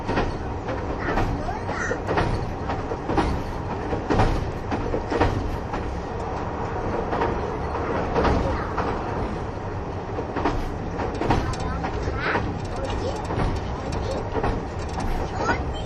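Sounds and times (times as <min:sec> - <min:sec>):
KiHa 71 series Yufuin no Mori diesel express running: 0:00.0 - 0:15.8
rail clicks: 0:00.0 - 0:15.8.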